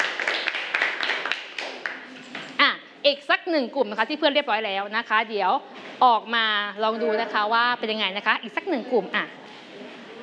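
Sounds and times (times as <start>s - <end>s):
light clapping in a classroom for a student group: 0.0s - 2.4s
speech: 3.0s - 9.4s.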